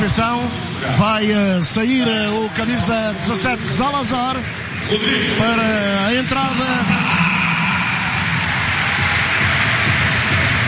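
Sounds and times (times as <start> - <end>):
speech: 0.0 - 7.3
large stadium crowd applauding a substituted player: 6.3 - 10.6.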